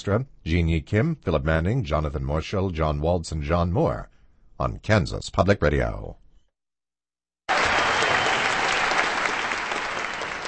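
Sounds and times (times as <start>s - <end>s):
speech: 0.0s - 6.2s
concert audience applause: 7.5s - 10.4s.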